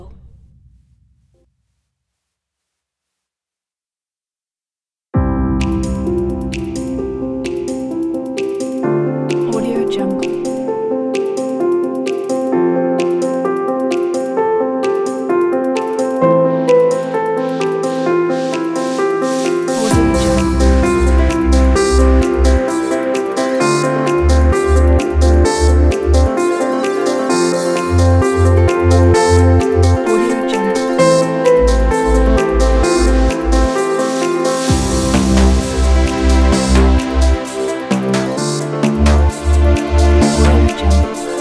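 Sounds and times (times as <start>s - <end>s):
inspirational corporate music kit: 5.3s - 41.3s.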